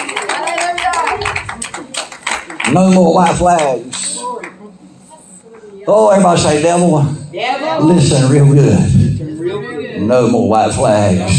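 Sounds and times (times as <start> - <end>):
audience hand clapping: 0.0 - 4.6
speech: 2.7 - 4.0, 5.8 - 8.9, 9.6 - 11.3.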